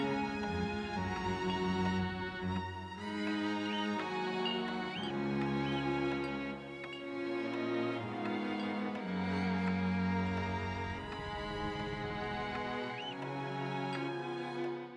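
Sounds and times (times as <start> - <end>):
layered melodies: 0.0 - 14.9.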